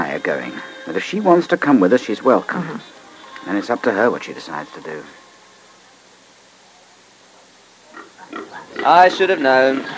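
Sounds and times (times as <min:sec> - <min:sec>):
speech: 0:00.1 - 0:05.2, 0:08.8 - 0:09.9
piglets grunting: 0:07.9 - 0:09.9.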